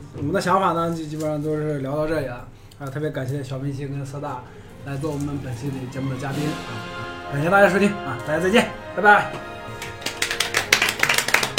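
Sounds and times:
speech: 0.2 - 9.5
awkward applause: 9.4 - 11.5.

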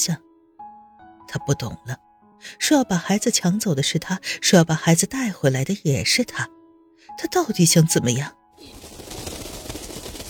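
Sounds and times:
speech: 0.0 - 0.3, 1.4 - 8.8
bird wings flapping against window: 8.6 - 10.2.

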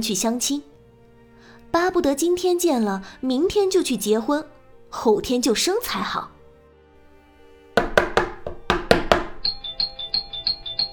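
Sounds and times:
speech: 0.0 - 0.8, 1.7 - 6.4
frantic knocking on door: 7.8 - 9.6
urgent doorbell ringing: 9.0 - 10.9.

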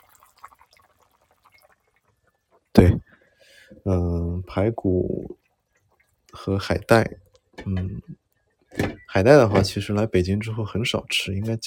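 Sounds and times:
soup boiling in a pot: 0.0 - 3.4, 4.4 - 7.6
speech: 2.8 - 3.1, 3.8 - 5.4, 6.4 - 11.6.

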